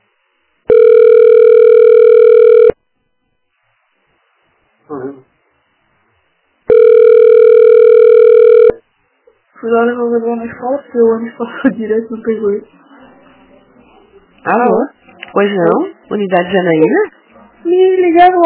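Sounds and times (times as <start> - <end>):
telephone ringing tone: 0.7 - 2.8, 6.7 - 8.8
speech: 9.7 - 12.8, 14.4 - 18.4.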